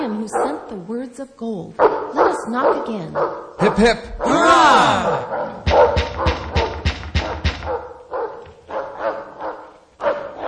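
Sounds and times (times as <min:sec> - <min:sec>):
dog barking: 0:00.1 - 0:00.8, 0:01.8 - 0:03.8, 0:05.2 - 0:10.4
speech: 0:00.2 - 0:06.0.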